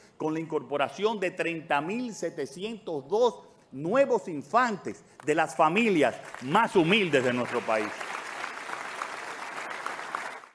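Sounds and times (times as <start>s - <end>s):
speech: 0.2s - 8.1s
applause from many people in a national assembly: 5.8s - 10.5s.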